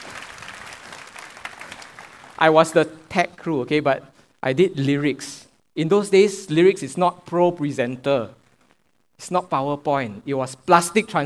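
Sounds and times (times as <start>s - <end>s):
crowd clapping: 0.0s - 2.8s
speech: 2.4s - 8.4s, 9.2s - 11.2s.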